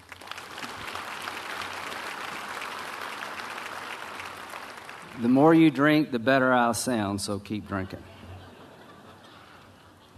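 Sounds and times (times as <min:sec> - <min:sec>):
audience round of applause: 0:00.0 - 0:05.7
speech: 0:05.2 - 0:08.1
laughter: 0:07.7 - 0:10.1.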